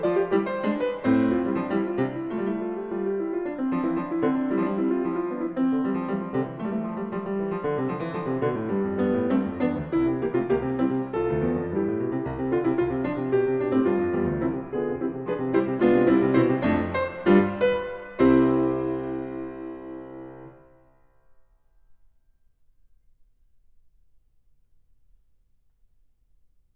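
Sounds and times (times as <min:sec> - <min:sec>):
fugue in C major: 0:00.0 - 0:20.6.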